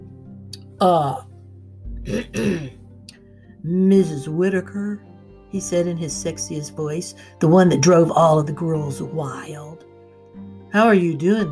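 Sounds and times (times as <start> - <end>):
speech: 0.8 - 1.3, 2.0 - 2.8, 3.6 - 9.9, 10.7 - 11.5
man clearing his throat: 2.1 - 2.8.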